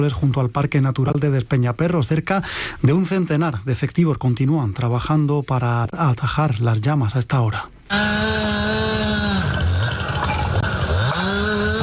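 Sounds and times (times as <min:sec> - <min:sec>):
speech: 0:00.0 - 0:08.6
brush-clearing power tools cutting vegetation at night by Plan Infoca wildfire crews: 0:07.9 - 0:11.8.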